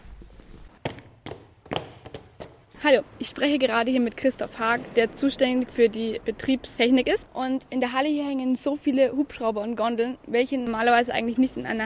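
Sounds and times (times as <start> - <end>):
footsteps across a hall with hanging helicopters and gondolas: 0.0 - 3.0
speech: 2.8 - 11.8.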